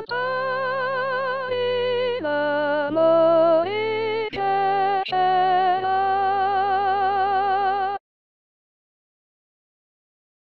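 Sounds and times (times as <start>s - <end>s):
sopranos singing: 0.0s - 8.0s.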